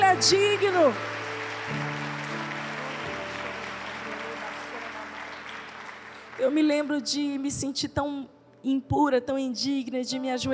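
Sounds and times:
sustained keyboard chords droning: 0.0s - 6.4s
steady dense audience applause: 0.0s - 7.0s
speech: 0.2s - 2.1s, 6.4s - 10.5s.

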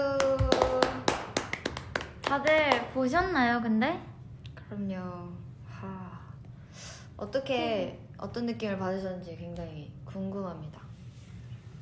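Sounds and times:
hand clapping: 0.0s - 3.0s
speech: 2.3s - 4.1s, 4.7s - 6.1s, 6.8s - 10.8s.

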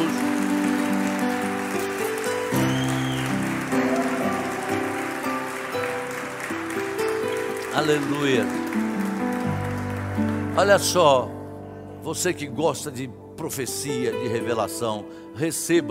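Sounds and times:
audience applause: 0.0s - 11.0s
speech: 7.8s - 8.8s, 10.6s - 11.4s, 12.0s - 15.8s.

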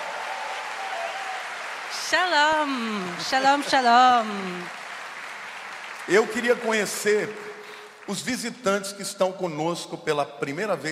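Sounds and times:
audience applause: 0.0s - 8.6s
speech: 2.1s - 4.8s, 6.1s - 7.5s, 8.1s - 10.8s.

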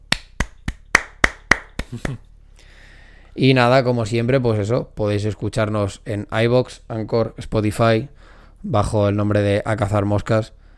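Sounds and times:
hand claps: 0.0s - 2.2s
laughter: 1.8s - 2.2s
speech: 1.9s - 2.3s, 3.4s - 10.6s.

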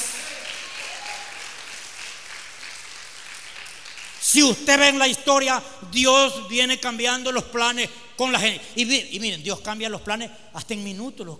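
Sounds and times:
audience applause: 0.0s - 4.4s
speech: 4.3s - 11.3s.

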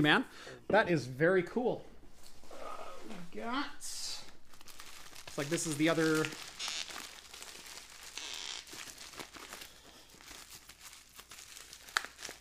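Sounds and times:
speech: 0.0s - 1.9s, 3.4s - 4.0s, 5.4s - 6.4s
tape and wrapping tearing as a taped beer package is opened: 4.1s - 12.3s.

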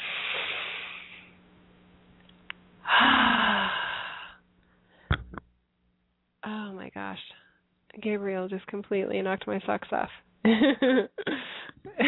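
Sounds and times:
long airy deep breaths: 0.0s - 1.4s, 2.8s - 5.1s, 11.3s - 11.8s
speech: 8.0s - 11.3s.

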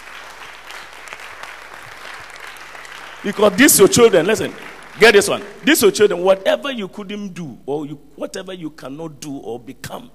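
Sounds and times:
audience clapping: 0.0s - 6.4s
speech: 3.2s - 10.1s.

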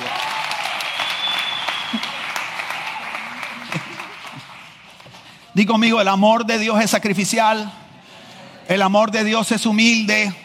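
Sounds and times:
applause: 0.0s - 5.6s
speech: 5.6s - 7.8s, 8.7s - 10.4s.

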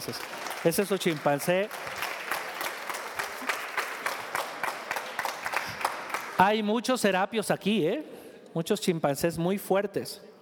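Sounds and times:
speech: 0.0s - 2.0s, 6.4s - 10.3s
audience applause: 0.0s - 6.4s.

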